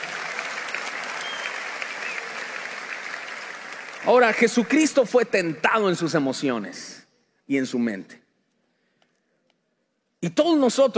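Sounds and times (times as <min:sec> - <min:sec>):
audience applause: 0:00.0 - 0:05.1
speech: 0:04.0 - 0:08.2, 0:10.2 - 0:10.9.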